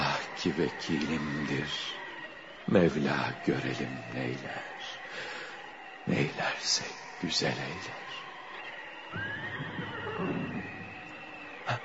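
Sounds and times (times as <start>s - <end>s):
speech: 0.4s - 2.0s, 2.6s - 5.3s, 6.0s - 8.1s
white horse neighing during a storm, radio drama sound effect: 9.2s - 10.9s.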